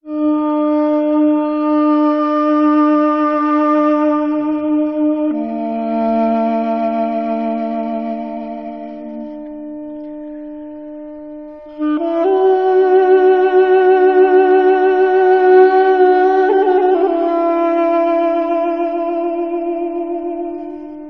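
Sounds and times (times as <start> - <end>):
sad saxophone: 0.0 - 21.0.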